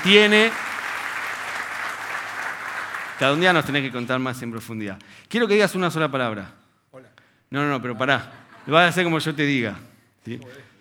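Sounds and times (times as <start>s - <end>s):
speech: 0.0s - 0.6s, 3.2s - 10.7s
audience applause: 0.0s - 4.0s.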